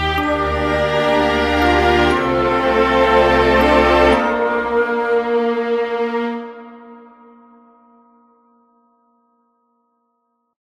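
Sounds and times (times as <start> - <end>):
happy orchestral music: 0.0 - 7.3.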